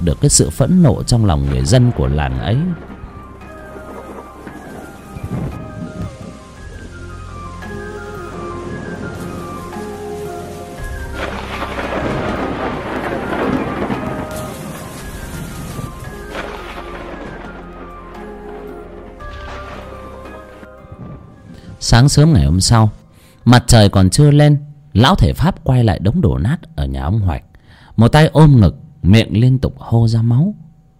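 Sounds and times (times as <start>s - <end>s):
speech: 0.0s - 2.9s, 22.0s - 30.6s
rain falling at night: 0.0s - 23.4s.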